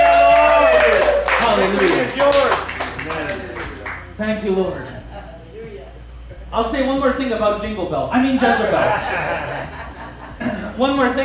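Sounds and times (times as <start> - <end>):
audience clapping: 0.0 - 4.1
speech: 4.2 - 5.0, 6.5 - 9.8, 10.4 - 11.2
laughter: 8.2 - 10.9.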